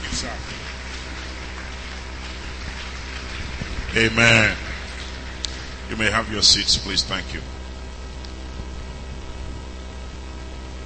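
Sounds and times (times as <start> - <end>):
audience clapping: 0.0 - 6.2
speech: 3.9 - 4.6, 6.0 - 7.6.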